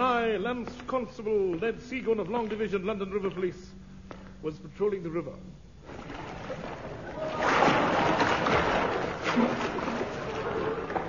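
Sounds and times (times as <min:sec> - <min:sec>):
speech: 0:00.4 - 0:03.8, 0:04.4 - 0:06.0
splashing of swimming in river water: 0:05.8 - 0:11.0.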